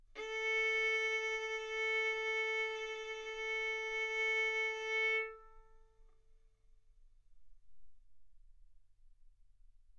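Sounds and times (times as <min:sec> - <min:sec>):
violin bowed arco notes: 0:00.2 - 0:06.0.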